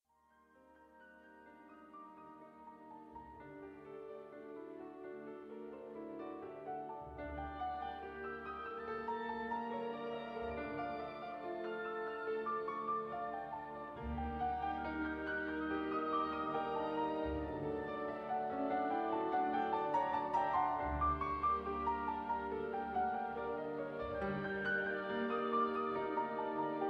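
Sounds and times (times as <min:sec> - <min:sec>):
piano concerto: 0:00.2 - 0:26.8.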